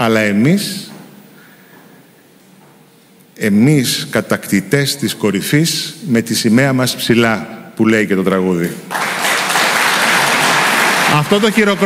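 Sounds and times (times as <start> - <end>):
speech: 0.0 - 0.9, 3.4 - 9.2, 11.1 - 11.8
applause: 8.9 - 11.8.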